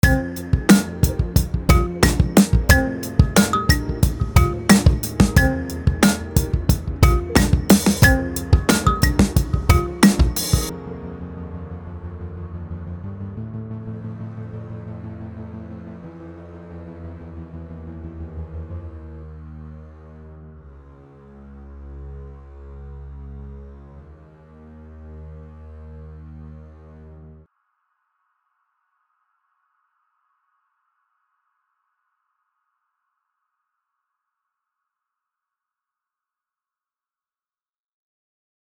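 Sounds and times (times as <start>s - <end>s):
basic hip hop beat: 0.0s - 10.7s.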